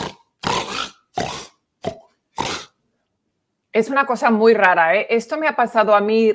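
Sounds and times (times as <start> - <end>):
voice imitating snoring: 0.0 - 2.7
speech: 3.8 - 6.3.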